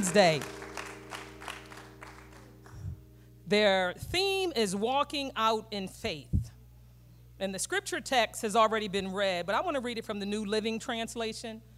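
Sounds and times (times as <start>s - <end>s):
speech: 0.0s - 0.6s, 3.5s - 6.4s, 7.4s - 11.7s
church congregation applause at a Women's Day service: 0.0s - 2.9s
low hum: 0.0s - 7.4s.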